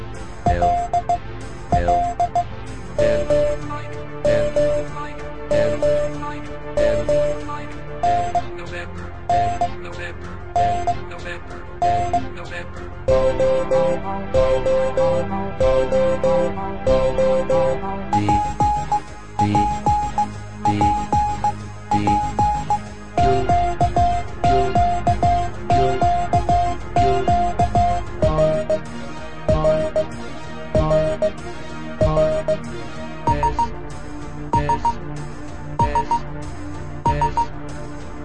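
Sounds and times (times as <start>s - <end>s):
Morse code telegraphy song: 0.5s - 1.2s, 1.8s - 3.6s, 4.2s - 4.8s, 5.5s - 6.1s, 6.8s - 7.4s, 8.0s - 8.6s, 9.3s - 9.8s, 10.6s - 11.0s, 11.8s - 12.3s, 13.1s - 28.9s, 29.5s - 30.1s, 30.8s - 31.4s, 32.1s - 32.7s, 33.3s - 33.8s, 34.6s - 35.0s, 35.8s - 36.3s, 37.1s - 37.5s.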